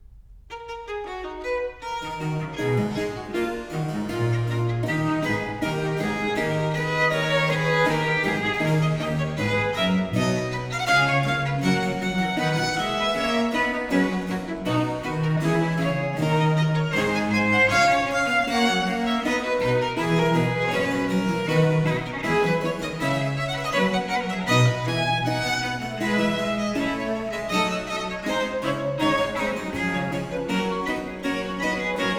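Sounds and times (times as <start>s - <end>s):
allegro violin fugue in A major: 0.5s - 32.1s.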